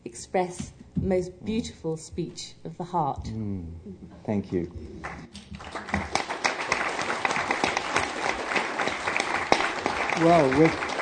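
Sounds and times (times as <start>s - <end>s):
speech: 0.2s - 5.2s, 10.2s - 10.9s
audience applause at conference: 5.0s - 11.0s.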